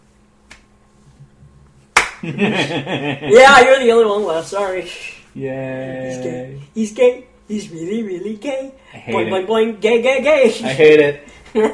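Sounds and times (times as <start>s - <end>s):
slow clap: 0.4s - 0.7s, 1.8s - 2.4s
laughter: 2.2s - 3.5s
speech: 2.2s - 11.7s.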